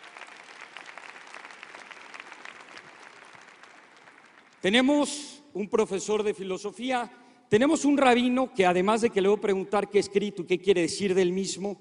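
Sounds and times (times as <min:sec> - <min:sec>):
audience applause welcoming a speaker to a debate: 0:00.0 - 0:04.7
speech: 0:04.6 - 0:11.7.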